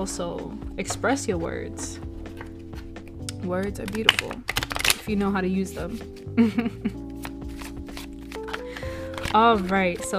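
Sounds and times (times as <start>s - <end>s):
speech: 0.0s - 2.1s, 3.4s - 7.0s, 9.3s - 10.1s
steady sustained music: 0.0s - 10.1s
playing cards being shuffled: 2.1s - 10.1s.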